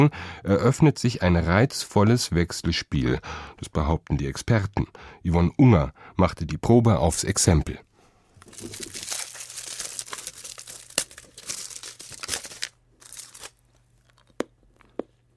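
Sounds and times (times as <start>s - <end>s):
speech: 0.0s - 7.9s, 8.5s - 9.0s
foil crinkling as a milk chocolate Santa Claus is unwrapped: 8.4s - 13.6s.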